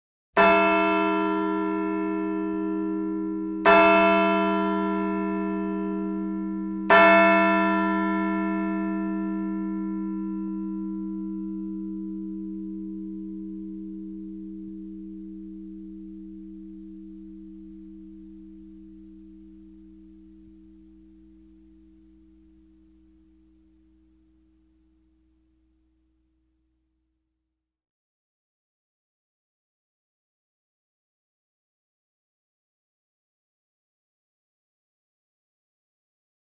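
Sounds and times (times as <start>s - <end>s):
New England church bell towers ringing: 0.4s - 23.2s.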